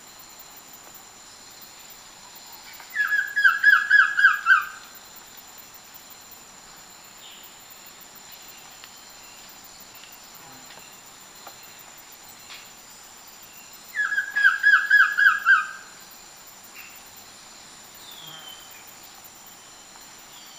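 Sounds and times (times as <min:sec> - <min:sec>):
Collared Trogon calling in Ecuador: 0:02.9 - 0:04.8, 0:13.9 - 0:15.9.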